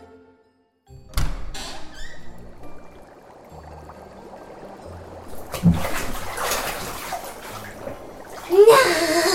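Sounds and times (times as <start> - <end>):
water sloshing as someone climbs into a hot bath: 1.9 - 9.3.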